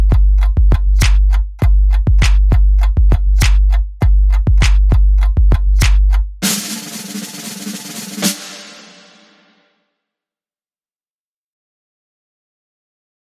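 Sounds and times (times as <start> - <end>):
music beat: 0.0 - 9.6.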